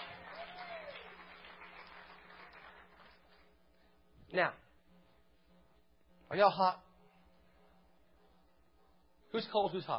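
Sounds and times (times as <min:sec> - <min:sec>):
audience clapping hands: 0:00.0 - 0:03.6
speech: 0:04.3 - 0:04.6, 0:06.3 - 0:06.8, 0:09.3 - 0:09.9.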